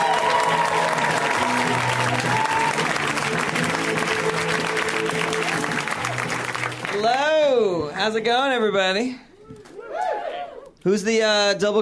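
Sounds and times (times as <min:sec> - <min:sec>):
comedy club audience applauding to welcome a comic: 0:00.0 - 0:07.6
speech: 0:08.0 - 0:09.3, 0:10.8 - 0:11.7.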